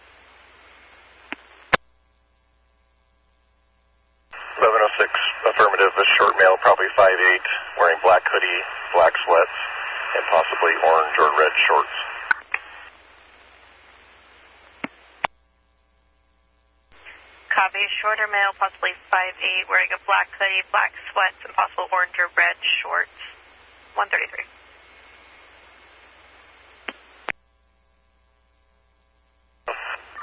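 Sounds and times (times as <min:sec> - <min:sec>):
steady whine: 0:00.0 - 0:30.2
radio static: 0:04.3 - 0:15.3, 0:16.9 - 0:27.4, 0:29.6 - 0:30.2
garbled radio transmission voice: 0:04.4 - 0:12.8, 0:17.5 - 0:23.4, 0:24.0 - 0:24.5, 0:29.7 - 0:30.2
speech: 0:06.5 - 0:12.1, 0:18.0 - 0:23.3, 0:24.0 - 0:24.6
radio keying on and off clicks: 0:14.8 - 0:15.4.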